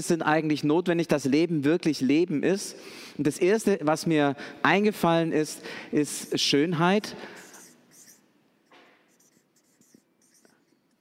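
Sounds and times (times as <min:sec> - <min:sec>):
speech: 0:00.0 - 0:07.4
pen scratching on paper writing by hand: 0:09.1 - 0:10.9.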